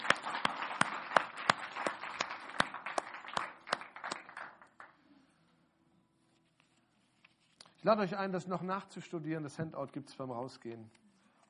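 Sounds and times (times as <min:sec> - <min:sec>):
audience applause: 0:00.0 - 0:04.9
speech: 0:07.8 - 0:11.0.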